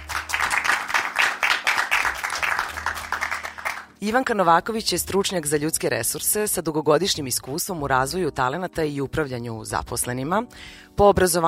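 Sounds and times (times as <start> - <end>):
talk-show studio audience applauding: 0.0 - 3.9
speech: 4.0 - 11.4.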